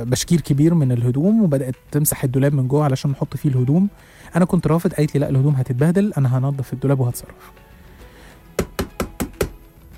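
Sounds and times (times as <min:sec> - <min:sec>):
speech: 0:00.0 - 0:07.6
knocking on a door: 0:08.6 - 0:09.6.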